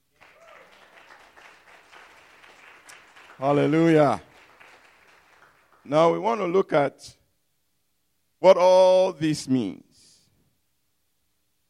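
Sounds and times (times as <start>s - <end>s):
crowd applause: 0.1s - 6.2s
speech: 3.4s - 4.3s, 5.9s - 7.2s, 8.4s - 9.8s.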